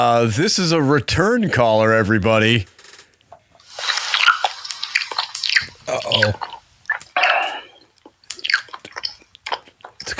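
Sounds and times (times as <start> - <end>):
speech: 0.0 - 2.8, 6.1 - 6.5
wet chewing mouth noises on voicemail: 3.6 - 10.1.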